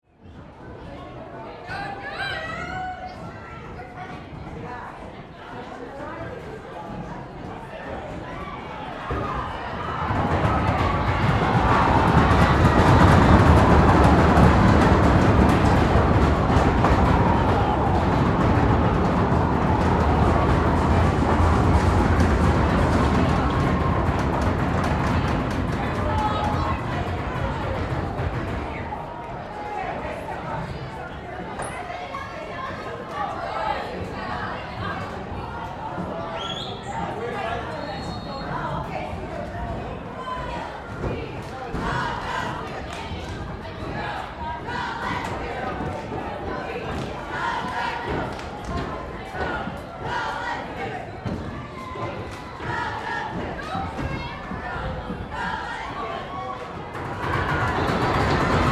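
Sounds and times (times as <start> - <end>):
high school football game entrance ambience under bleachers: 0.0 - 58.7.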